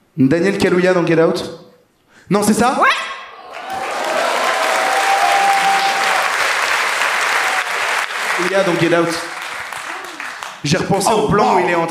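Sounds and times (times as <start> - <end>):
speech: 0.2 - 1.6, 2.3 - 3.1, 8.4 - 9.3, 10.6 - 11.8
group applauding: 3.4 - 11.8.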